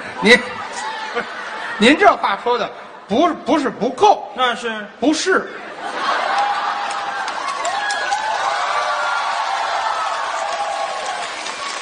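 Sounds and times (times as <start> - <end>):
speech: 0.2 - 6.2
laughter: 0.3 - 2.0, 5.4 - 7.9
audience applause: 6.0 - 11.7.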